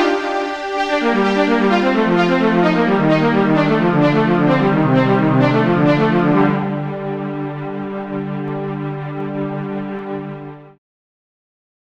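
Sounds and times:
viola playing a caprice: 0.0 - 10.6.

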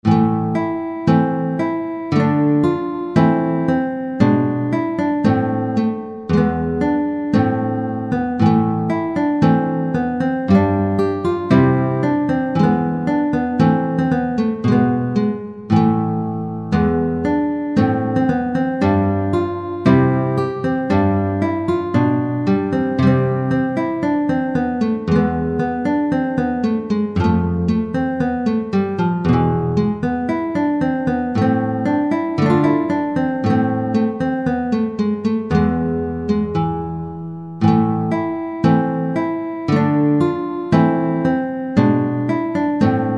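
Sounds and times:
guitar: 0.0 - 43.1.

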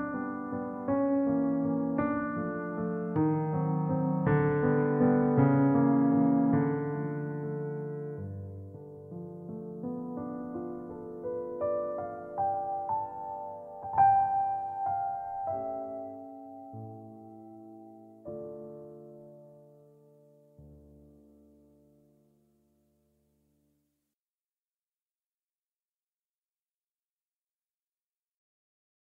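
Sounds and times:
miniature pastoral music piece: 0.0 - 23.0.

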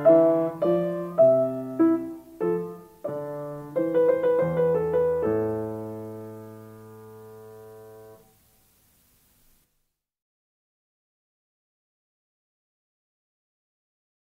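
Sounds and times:
minuet: 0.0 - 8.2.

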